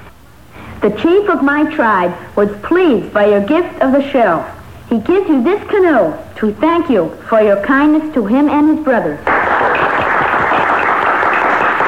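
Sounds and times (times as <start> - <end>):
speech: 0.8 - 9.3
applause from a crowd of pilgrims: 9.2 - 11.8.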